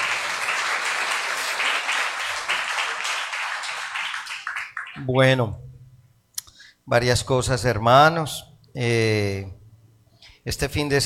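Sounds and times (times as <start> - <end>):
audience applause: 0.0 - 5.0
speech: 5.0 - 5.6, 6.9 - 9.6, 10.4 - 11.0.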